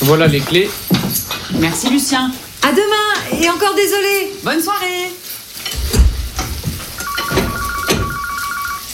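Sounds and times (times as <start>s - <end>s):
speech: 0.0s - 0.8s, 1.5s - 5.2s
food sizzling: 0.0s - 8.9s
pans clattering: 0.0s - 8.9s
telephone ringing: 7.0s - 8.9s.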